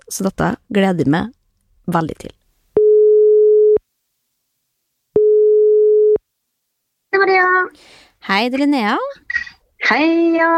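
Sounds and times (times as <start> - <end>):
speech: 0.1 - 2.4, 7.1 - 10.5
telephone ringback tone on an outgoing call: 2.8 - 3.8, 5.2 - 6.2.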